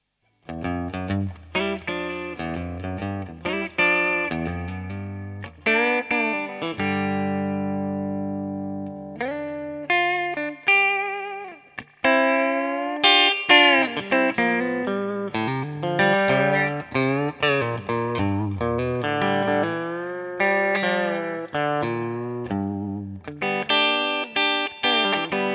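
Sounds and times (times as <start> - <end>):
Telecaster electric guitar: 0.4 - 25.5.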